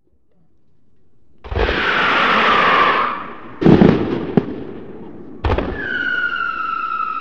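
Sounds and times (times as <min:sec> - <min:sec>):
fireworks: 0:01.4 - 0:07.2.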